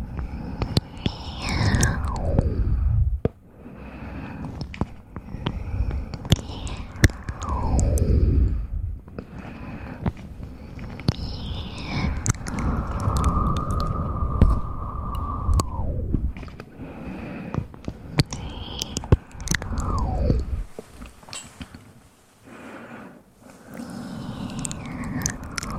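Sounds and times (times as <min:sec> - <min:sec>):
mouth sounds of falling glides: 0:00.0 - 0:03.3, 0:04.0 - 0:21.9, 0:23.4 - 0:25.7
low breathy rumble: 0:00.0 - 0:25.7
scattered clicks: 0:00.2 - 0:02.4, 0:04.5 - 0:08.5, 0:10.7 - 0:16.7, 0:17.5 - 0:20.6, 0:24.3 - 0:25.7.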